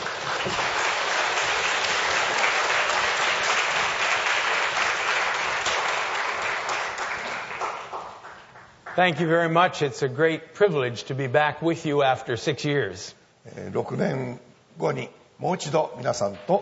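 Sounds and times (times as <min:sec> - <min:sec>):
audience applause welcoming a speaker: 0:00.0 - 0:09.0
speech: 0:09.0 - 0:16.6.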